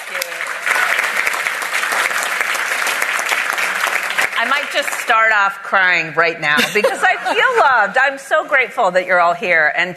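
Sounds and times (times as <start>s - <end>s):
audience applause: 0.0s - 5.4s
speech: 4.4s - 9.9s.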